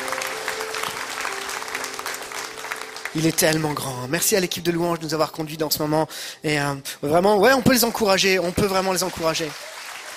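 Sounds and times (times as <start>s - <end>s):
church congregation clapping during a worship service: 0.0s - 4.5s, 8.1s - 10.1s
speech: 3.1s - 9.7s.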